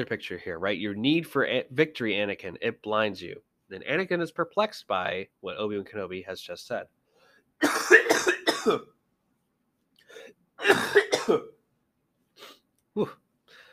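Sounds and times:
speech: 0:00.0 - 0:07.0, 0:07.6 - 0:08.9, 0:10.6 - 0:11.6, 0:12.4 - 0:13.2
harsh raspy coughing: 0:07.6 - 0:08.9, 0:10.1 - 0:11.6.

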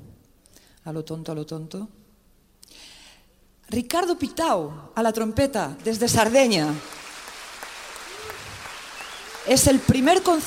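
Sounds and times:
speech: 0:00.8 - 0:02.0, 0:03.7 - 0:07.0, 0:09.5 - 0:10.4
audience ovation: 0:06.2 - 0:10.4.

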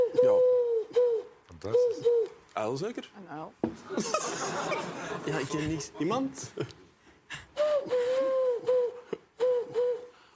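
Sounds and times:
pigeon call: 0:00.0 - 0:02.3, 0:07.6 - 0:10.1
speech: 0:01.6 - 0:06.8
laughter: 0:03.8 - 0:06.8.

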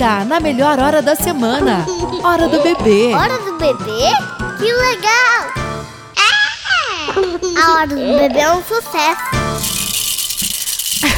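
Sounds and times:
speech: 0:00.0 - 0:05.6, 0:07.1 - 0:09.3
baby rattle shaken hard in a traditional rhythm: 0:09.2 - 0:11.1.

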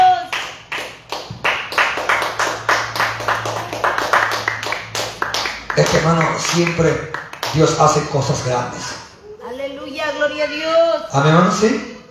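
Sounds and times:
audience clapping: 0:00.3 - 0:08.0
speech: 0:05.8 - 0:09.0, 0:10.4 - 0:11.9.

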